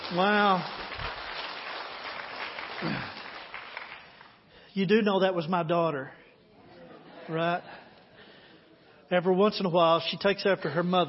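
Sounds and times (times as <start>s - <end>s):
audience applause: 0.0s - 4.4s
speech: 0.1s - 1.1s, 4.8s - 6.2s, 7.3s - 7.8s, 9.1s - 11.0s.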